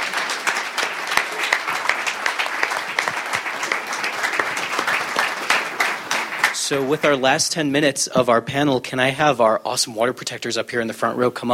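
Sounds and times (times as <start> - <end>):
audience applause for panel members: 0.0 - 7.2
speech: 6.7 - 11.5.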